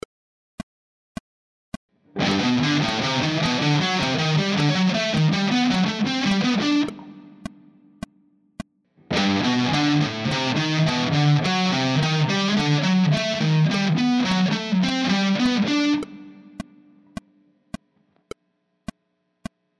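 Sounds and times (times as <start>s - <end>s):
harmonic major scale: 2.2s - 7.4s, 9.1s - 16.6s.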